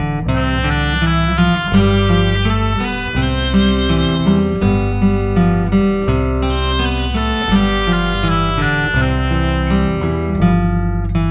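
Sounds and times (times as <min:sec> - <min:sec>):
instrumental music: 0:00.1 - 0:11.1.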